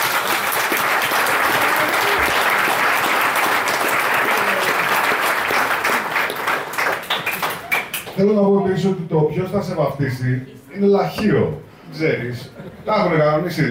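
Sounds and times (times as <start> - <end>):
audience applause: 0.0 - 8.2
speech: 8.2 - 13.7.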